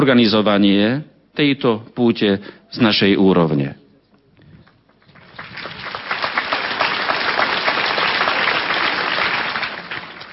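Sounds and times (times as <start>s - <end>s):
speech: 0.0s - 3.8s
audience applause: 5.0s - 10.3s.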